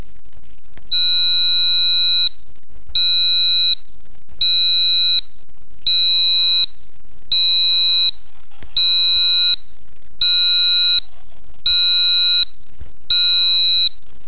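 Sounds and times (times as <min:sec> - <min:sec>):
buzzer: 0:00.9 - 0:02.3, 0:03.0 - 0:03.8, 0:04.4 - 0:05.2, 0:05.9 - 0:06.7, 0:07.4 - 0:08.2, 0:08.8 - 0:09.6, 0:10.2 - 0:11.0, 0:11.7 - 0:12.5, 0:13.1 - 0:14.0.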